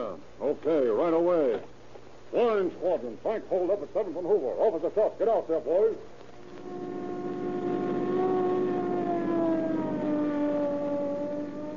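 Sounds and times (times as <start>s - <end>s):
speech: 0.6s - 6.8s
low rumbling engine: 6.2s - 11.7s
police car siren: 6.4s - 11.7s.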